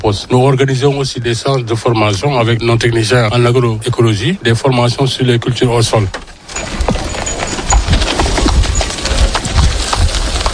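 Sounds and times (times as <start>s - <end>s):
speech: 0.0s - 7.0s
garbage collection cart rattling: 5.8s - 10.5s
clip-clopping: 6.1s - 10.5s.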